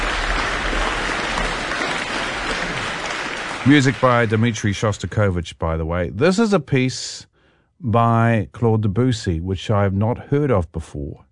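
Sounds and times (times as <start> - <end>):
audience applause after chamber music performance: 0.0 - 5.2
speech: 3.6 - 11.2.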